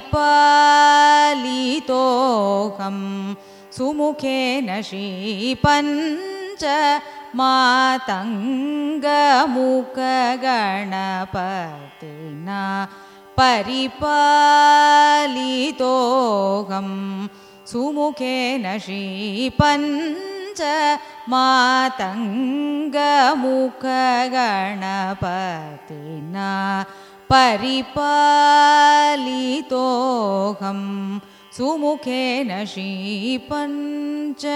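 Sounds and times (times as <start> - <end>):
Carnatic raga music: 0.0 - 34.5.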